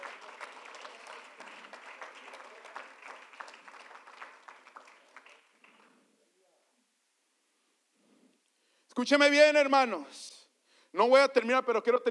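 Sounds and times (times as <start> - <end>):
audience applauding: 0.0 - 6.0
speech: 9.0 - 10.3, 10.9 - 12.0.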